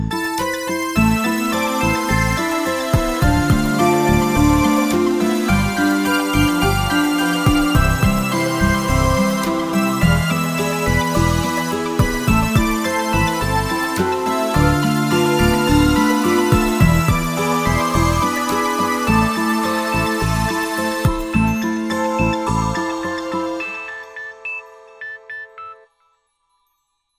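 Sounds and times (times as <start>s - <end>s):
electronic dance music: 0.1s - 25.9s.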